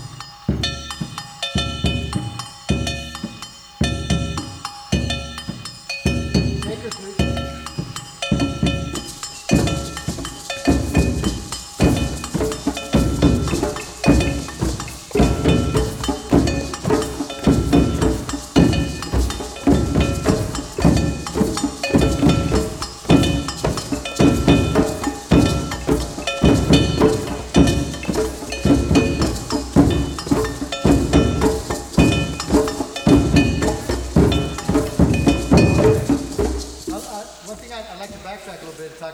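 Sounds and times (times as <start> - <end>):
agogô bells struck together: 0.0 - 38.5.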